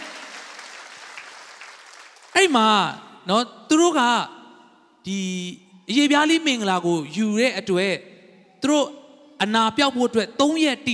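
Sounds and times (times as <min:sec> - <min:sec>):
church congregation clapping during a Sunday sermon: 0:00.0 - 0:02.8
speech: 0:02.4 - 0:04.4, 0:05.0 - 0:10.9.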